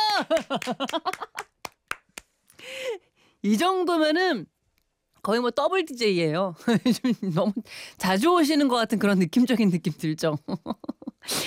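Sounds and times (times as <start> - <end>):
audience clapping: 0.1 - 2.4
speech: 0.2 - 1.3, 2.6 - 4.5, 5.2 - 11.4.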